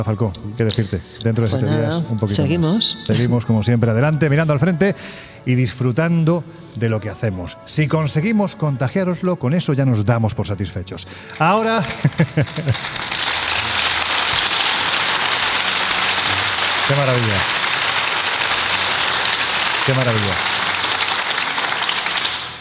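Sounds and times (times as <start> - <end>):
speech: 0.0 - 13.3, 16.9 - 17.6, 19.9 - 20.5
applause: 11.2 - 22.5
laughter: 11.5 - 17.3.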